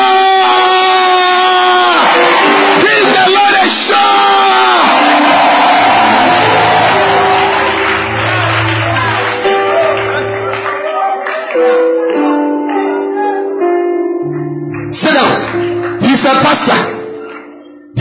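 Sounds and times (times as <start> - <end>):
audience shouting and cheering: 0.0 - 13.6
audience clapping: 1.0 - 13.0, 14.3 - 17.9.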